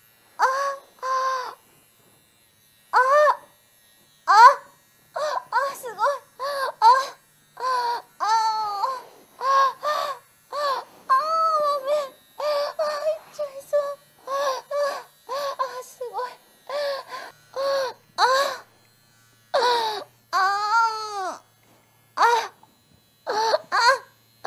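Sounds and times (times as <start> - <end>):
woman moaning: 0.4 - 1.6, 3.0 - 3.4, 4.3 - 18.7, 19.6 - 21.4, 22.2 - 22.6, 23.3 - 24.4.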